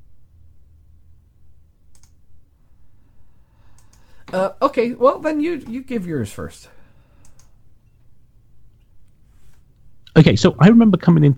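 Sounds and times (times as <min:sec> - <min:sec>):
low steady hiss: 0:00.0 - 0:11.3
faint clicking of computer keyboard keys typing a message: 0:01.9 - 0:02.2
speech: 0:04.3 - 0:06.8, 0:10.2 - 0:11.3.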